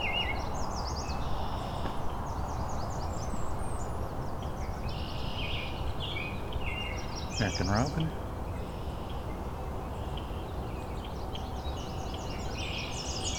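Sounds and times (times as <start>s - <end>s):
Blackburnian warbler song: 0.0s - 13.3s
speech: 7.4s - 8.2s.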